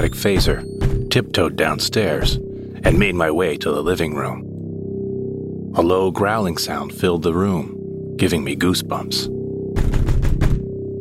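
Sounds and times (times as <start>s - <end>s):
speech: 0.0s - 4.4s, 5.8s - 9.4s
banging on a front door: 0.4s - 1.2s, 9.8s - 10.8s.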